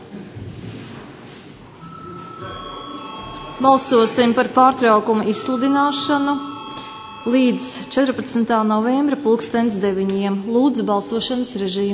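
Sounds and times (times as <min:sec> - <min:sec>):
electronic bell tone rung to call a vote: 0:01.8 - 0:09.2
speech: 0:03.6 - 0:06.5, 0:07.2 - 0:11.9.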